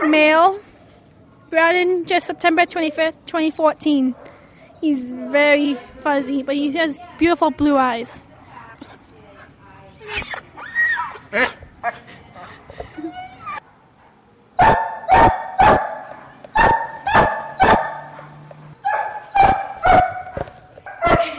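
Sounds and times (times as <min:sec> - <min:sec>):
speech: 0:00.1 - 0:00.6, 0:01.5 - 0:08.3, 0:11.3 - 0:12.0
German Shepherd or Belgian Tervuren mix whimpering and yipping: 0:10.0 - 0:11.6, 0:12.8 - 0:13.6
six-year-old German Shepherd or Belgian Tervuren mix barking: 0:14.6 - 0:21.3.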